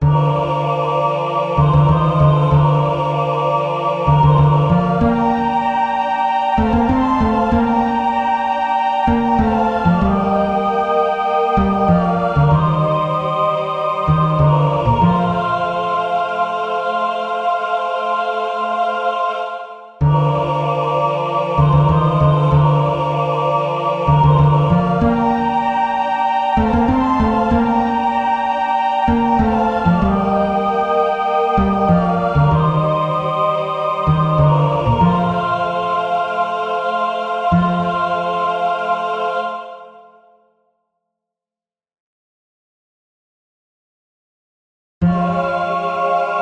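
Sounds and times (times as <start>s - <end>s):
choir singing: 0.0s - 40.6s, 45.0s - 46.4s.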